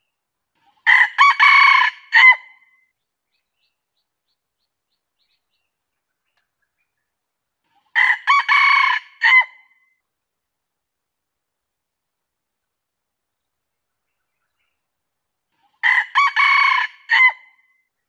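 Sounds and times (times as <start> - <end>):
junglefowl crowing: 0.8 - 2.5, 8.0 - 9.6, 15.8 - 17.5.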